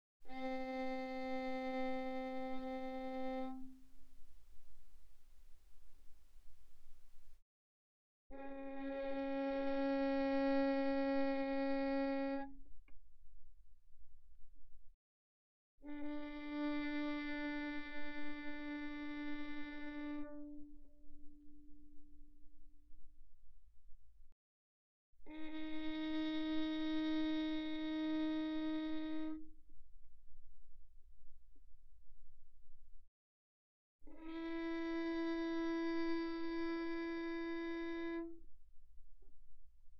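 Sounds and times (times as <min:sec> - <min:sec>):
violin bowed pianissimo on the G string: 0:00.2 - 0:07.4, 0:08.3 - 0:12.6, 0:15.8 - 0:22.1, 0:25.2 - 0:29.6, 0:34.0 - 0:38.6.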